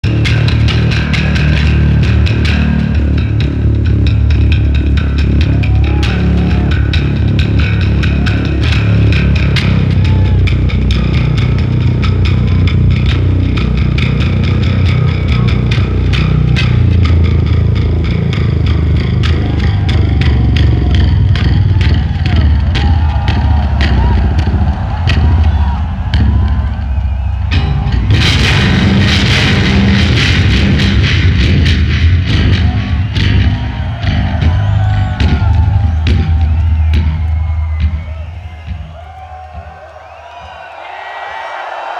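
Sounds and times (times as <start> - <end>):
bass solo: 0.0 - 39.6.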